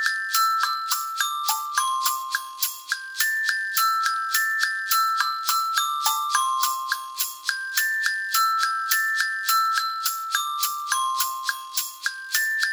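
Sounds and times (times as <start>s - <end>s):
chime bars: 0.0s - 12.7s.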